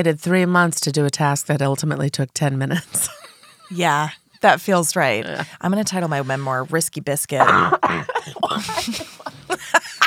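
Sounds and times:
speech: 0.0 - 9.1
laughter: 2.8 - 3.8, 7.4 - 10.0
rough breathy coughing: 7.4 - 10.0.

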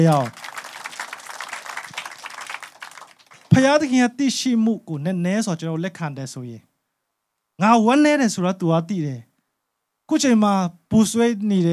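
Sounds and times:
speech: 0.0 - 0.4, 3.6 - 6.7, 7.6 - 9.3, 10.1 - 11.7
congregation clapping hands in praise during a church service: 0.0 - 4.0.

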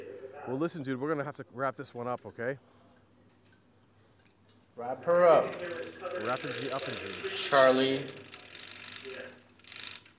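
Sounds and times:
speech: 0.5 - 2.9, 4.8 - 8.2
clock chains pulled to wind a clock: 5.3 - 10.1.

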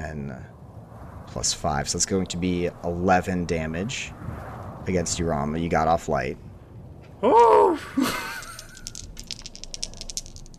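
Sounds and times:
speech: 0.2 - 0.6, 1.3 - 6.5, 7.2 - 8.2
dice rattling on hard surface: 8.2 - 10.5.

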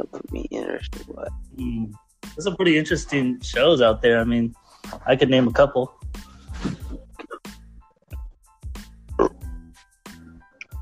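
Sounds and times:
speech: 0.0 - 6.0
loud low croaky burps: 7.1 - 7.5, 9.1 - 9.5.

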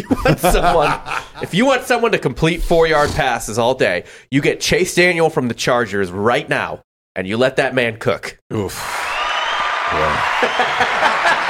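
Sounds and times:
laughter: 0.0 - 1.8, 9.8 - 11.4
speech: 0.0 - 9.1, 9.9 - 11.4
round of applause: 8.7 - 11.4.

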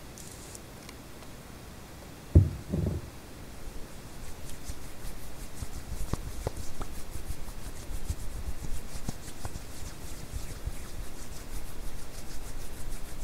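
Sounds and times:
steady hiss of white noise: 0.0 - 13.2
sharp knock: 2.4 - 3.1
hands rubbing and brushing: 4.2 - 13.2.

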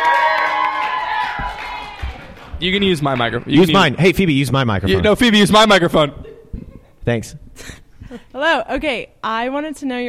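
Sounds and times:
audience cheering at a live question-and-answer event: 0.0 - 4.0
speech: 2.6 - 6.3, 7.1 - 10.0.

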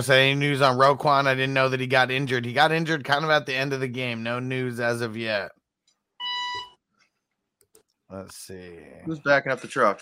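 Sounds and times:
speech: 0.0 - 5.6, 8.1 - 10.0
low battery warning beep from monitor: 6.2 - 6.8.

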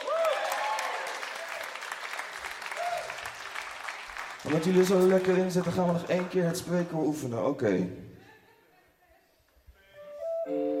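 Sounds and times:
audience applause: 0.0 - 7.2
speech: 4.4 - 8.1.

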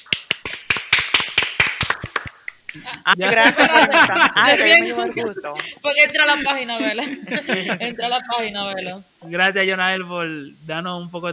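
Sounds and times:
small group clapping: 0.0 - 6.2
laughter: 2.8 - 8.6
speech: 2.8 - 11.3.

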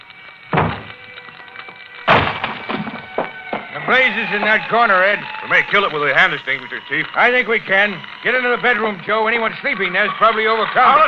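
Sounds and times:
firemen's axes chopping at a locked door: 0.5 - 0.9
speech: 3.9 - 11.0.

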